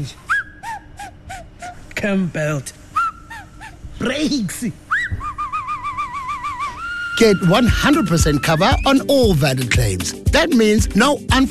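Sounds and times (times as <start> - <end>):
speech: 0.0 - 0.3, 2.0 - 2.8, 4.0 - 5.3, 7.2 - 11.5
person whistling: 0.2 - 1.8, 3.0 - 3.4, 4.9 - 9.4.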